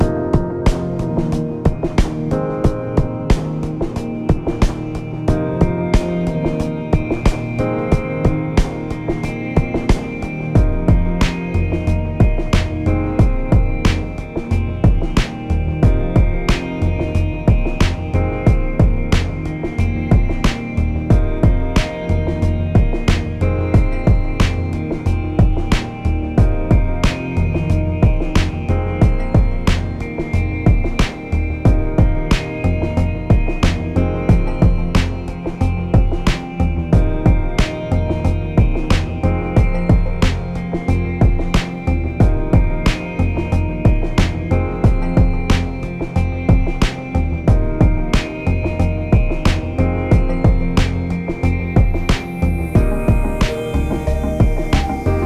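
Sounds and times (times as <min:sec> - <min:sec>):
background music: 0:00.0 - 0:55.2.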